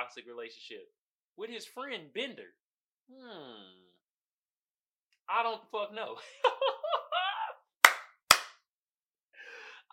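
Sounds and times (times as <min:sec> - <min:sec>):
speech: 0:00.1 - 0:03.9, 0:05.3 - 0:06.7
audience clapping: 0:07.8 - 0:08.6.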